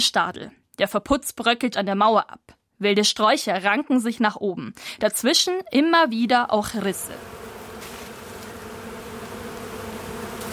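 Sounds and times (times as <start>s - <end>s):
speech: 0.0s - 7.4s
swarm of bees buzzing in greenery: 6.7s - 10.5s.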